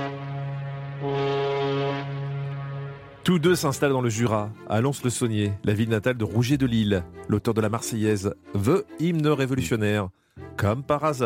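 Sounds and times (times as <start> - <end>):
ocean liner's horn sounding: 0.0 - 3.8
speech: 3.2 - 11.2.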